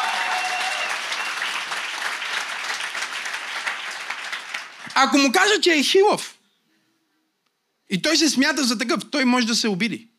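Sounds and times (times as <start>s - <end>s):
church congregation clapping: 0.0s - 5.5s
speech: 5.0s - 6.4s, 7.9s - 10.1s.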